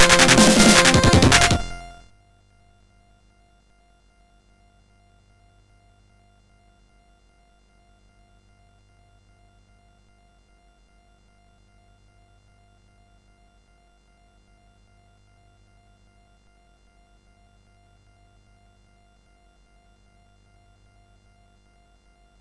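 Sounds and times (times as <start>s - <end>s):
MOS6581R4 SID chip music: 0.0s - 2.0s.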